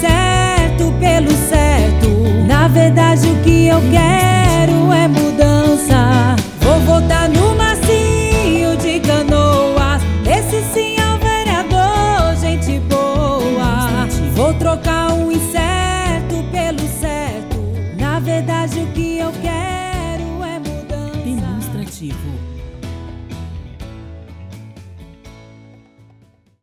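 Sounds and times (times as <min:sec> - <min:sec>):
woman singing a political jingle: 0:00.0 - 0:22.2.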